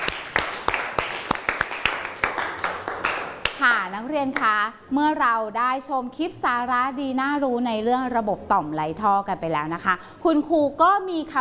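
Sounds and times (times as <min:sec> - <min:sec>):
small group clapping: 0:00.0 - 0:04.6
speech: 0:03.6 - 0:11.4.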